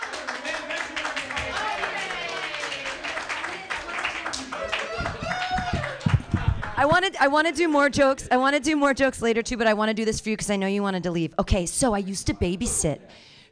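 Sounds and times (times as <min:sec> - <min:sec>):
small audience clapping: 0:00.0 - 0:07.0
speech: 0:06.8 - 0:13.5.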